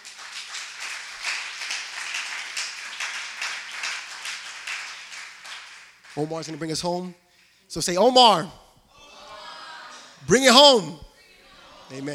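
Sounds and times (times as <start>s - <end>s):
audience clapping: 0.0s - 6.8s
speech: 6.2s - 8.6s, 10.2s - 11.0s, 11.9s - 12.1s.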